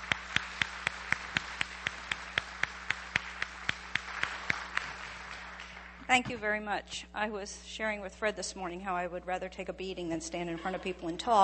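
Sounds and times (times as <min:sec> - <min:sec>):
audience applause welcoming a guest speaker at a morning gathering: 0:00.0 - 0:06.1
speech: 0:06.1 - 0:11.4.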